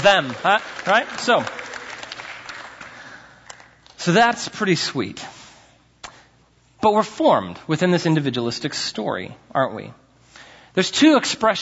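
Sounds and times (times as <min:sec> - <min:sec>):
speech: 0:00.0 - 0:01.6, 0:04.0 - 0:05.3, 0:06.8 - 0:10.0, 0:10.8 - 0:11.6
audience clapping: 0:00.0 - 0:04.0.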